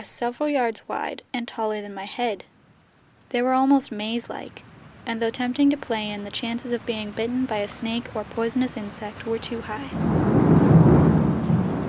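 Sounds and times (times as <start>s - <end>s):
speech: 0.0s - 2.5s, 3.3s - 10.3s
thunderstorm with rain: 9.7s - 11.8s.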